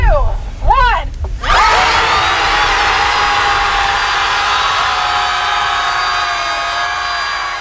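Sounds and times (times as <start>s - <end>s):
group of people screaming at the sea: 1.4s - 7.5s.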